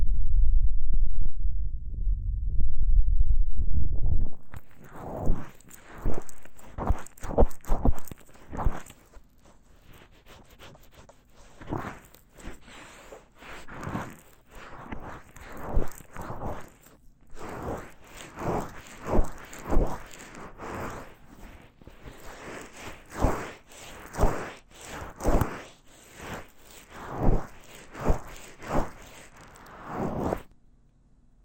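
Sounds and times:
low rumble: 0.0 - 5.4
ear massage rubbing strokes with lotion: 4.4 - 30.5.

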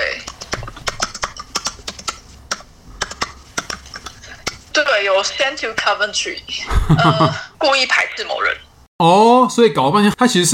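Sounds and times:
computer keyboard typing: 0.2 - 3.8
speech: 5.0 - 10.5.

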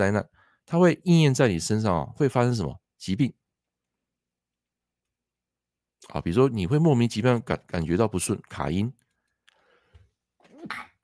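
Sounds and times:
speech: 0.0 - 3.4, 6.0 - 9.0, 10.6 - 10.9
sneeze: 10.5 - 11.0.

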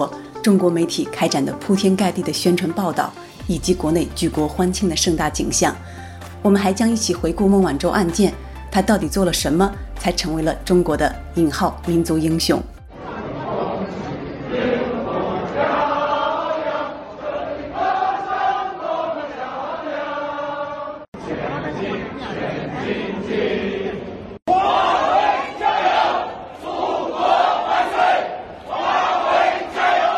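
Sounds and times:
speech: 0.0 - 12.7
crowd singing a patriotic song at Shenzhen Bao'an airport: 12.9 - 30.1.

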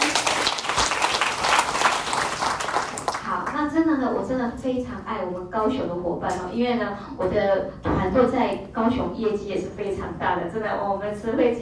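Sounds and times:
audience applause: 0.0 - 3.2
speech: 3.7 - 11.5.

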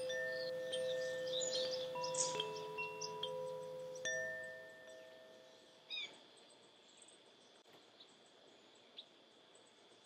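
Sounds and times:
wind chimes ringing: 0.0 - 5.8
soft steady hiss: 0.0 - 10.0.

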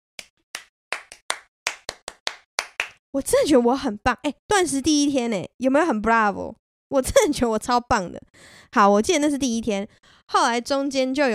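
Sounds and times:
clapping applause: 0.6 - 3.0
speech: 3.1 - 11.3.

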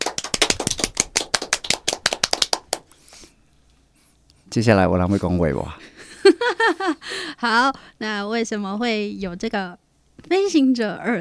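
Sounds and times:
small group clapping: 0.0 - 2.9
speech: 4.5 - 5.8, 6.7 - 11.1.

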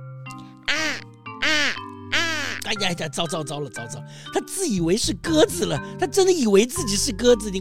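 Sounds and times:
crow cawing: 0.7 - 2.7
speech: 2.7 - 7.6.

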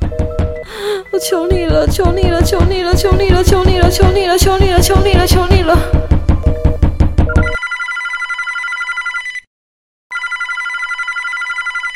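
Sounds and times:
telephone ringing in hotel room: 0.1 - 2.6, 7.3 - 9.5, 10.1 - 11.9
speech: 1.1 - 6.1.

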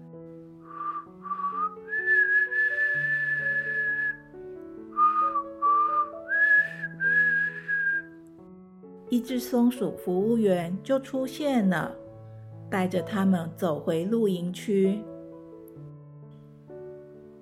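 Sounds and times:
soft music: 0.0 - 17.4
loud whistling: 0.7 - 4.2, 5.0 - 8.1
speech: 9.1 - 12.0, 12.7 - 15.1.

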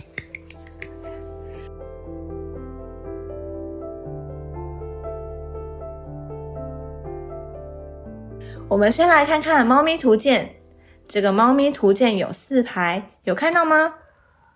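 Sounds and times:
hand clapping: 0.0 - 1.1
speech: 8.7 - 14.0.

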